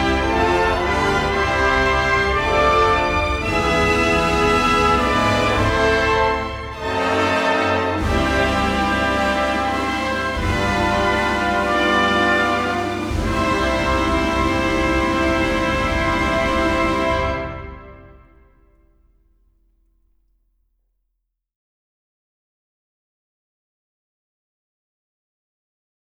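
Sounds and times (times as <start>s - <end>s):
national anthem: 0.0s - 18.6s.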